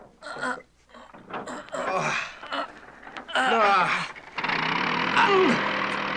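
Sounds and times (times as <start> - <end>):
indistinct voice-like sounds: 0.2 - 6.0
aircraft motor starting and running: 2.4 - 6.1.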